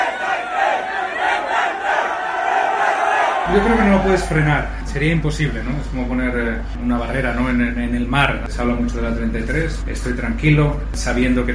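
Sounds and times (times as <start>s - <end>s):
crowd roaring and shouting in a racing pit lane: 0.0s - 4.7s
speech: 3.5s - 11.5s.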